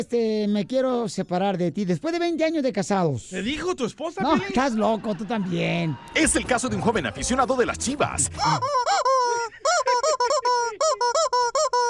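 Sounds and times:
speech: 0:00.0 - 0:09.1
laughter: 0:04.1 - 0:11.8
bird squawking: 0:08.3 - 0:11.8.

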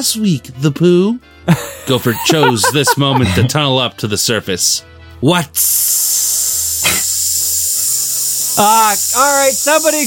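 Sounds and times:
speech: 0:00.0 - 0:07.0, 0:08.6 - 0:10.0
laughter: 0:01.5 - 0:03.7
air hissing from a leaky tire: 0:05.6 - 0:10.0.

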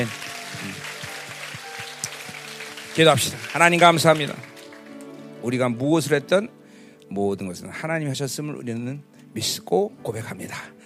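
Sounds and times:
speech: 0:00.0 - 0:00.8, 0:03.0 - 0:04.5, 0:05.4 - 0:10.8
audience applauding: 0:00.0 - 0:05.4.

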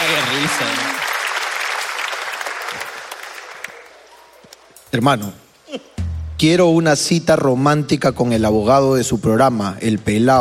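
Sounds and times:
applause: 0:00.0 - 0:04.2
speech: 0:00.5 - 0:00.9, 0:04.9 - 0:10.3.

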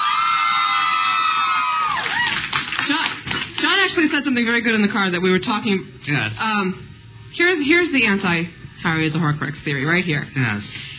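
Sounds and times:
audience cheering: 0:00.0 - 0:02.7
speech: 0:04.0 - 0:10.8.

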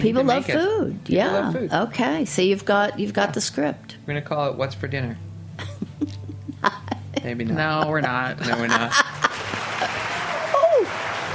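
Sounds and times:
speech: 0:00.0 - 0:05.3, 0:06.0 - 0:09.1
laughter: 0:05.6 - 0:11.3
clapping applause: 0:09.0 - 0:11.3.

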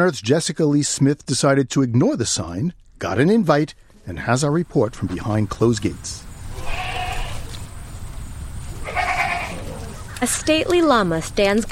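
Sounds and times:
speech: 0:00.0 - 0:06.7, 0:10.2 - 0:11.6
steady outdoor rumble of ambient noise: 0:02.4 - 0:11.6
goats and sheep bleating: 0:06.5 - 0:07.6, 0:08.7 - 0:10.2.

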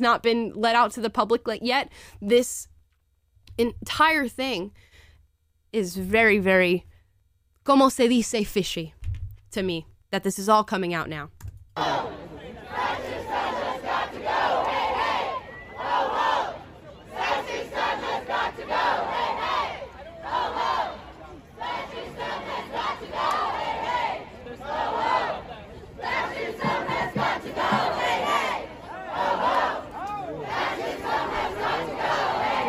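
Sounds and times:
speech: 0:00.0 - 0:02.7, 0:03.6 - 0:04.9, 0:05.7 - 0:06.9, 0:07.7 - 0:12.2
protest crowd chanting slogans: 0:11.8 - 0:32.6.

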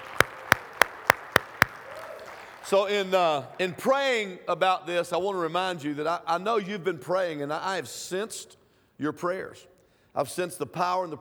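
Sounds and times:
audience round of applause: 0:00.0 - 0:03.8
speech: 0:02.7 - 0:11.1.

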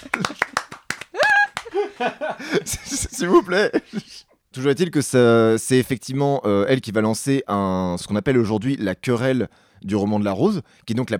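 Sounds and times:
small round of applause: 0:00.0 - 0:02.6
people laughing: 0:00.0 - 0:04.2
speech: 0:02.0 - 0:11.1.

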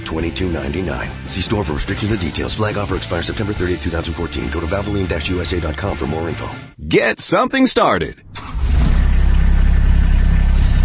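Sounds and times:
speech: 0:00.1 - 0:08.6
Kubota RTV utility vehicle engine idling: 0:08.4 - 0:10.8.

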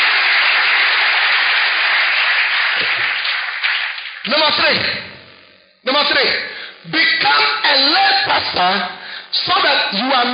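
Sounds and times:
audience clapping hands: 0:00.0 - 0:04.8
speech: 0:04.3 - 0:05.0, 0:06.0 - 0:06.4, 0:07.2 - 0:10.3.

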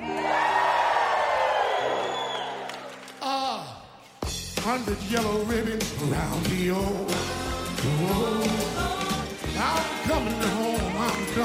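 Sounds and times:
crowd cheering and whooping: 0:00.0 - 0:03.2, 0:10.6 - 0:11.4
speech: 0:04.7 - 0:09.0, 0:09.6 - 0:11.4.

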